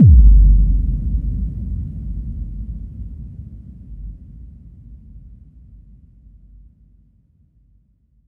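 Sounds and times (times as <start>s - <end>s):
simple impact effect: 0.0s - 4.2s.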